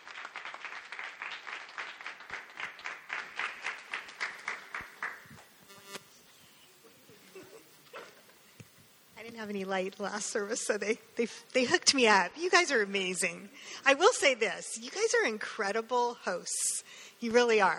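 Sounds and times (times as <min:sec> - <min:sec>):
crowd applause welcoming a guest speaker: 0:00.0 - 0:05.5
speech: 0:09.4 - 0:17.7.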